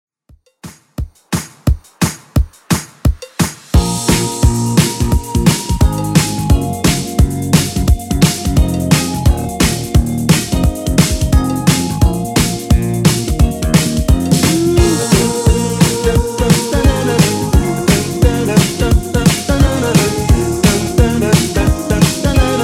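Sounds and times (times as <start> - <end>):
80s drum beat at 174 bpm: 0.3 - 22.6.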